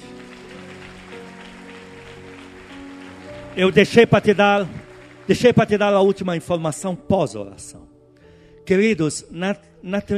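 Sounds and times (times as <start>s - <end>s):
crowd applause: 0.0s - 6.3s
faint sustained musical tones: 0.0s - 10.1s
speech: 3.6s - 7.9s, 8.7s - 10.1s.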